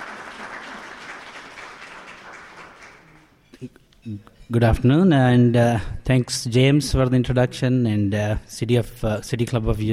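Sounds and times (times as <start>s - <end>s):
crowd applauding: 0.0s - 3.3s
speech: 3.6s - 9.9s.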